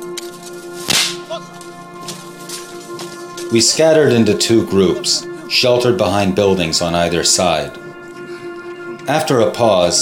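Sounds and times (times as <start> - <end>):
gunshot striking the ground: 0.9 - 1.2
speech: 3.5 - 7.9, 9.1 - 10.0.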